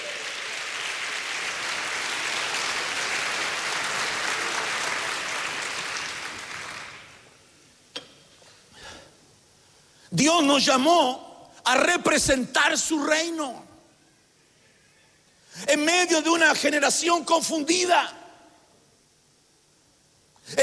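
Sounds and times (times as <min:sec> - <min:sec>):
audience clapping hands: 0:00.0 - 0:07.4
speech: 0:10.1 - 0:13.7, 0:15.8 - 0:18.2.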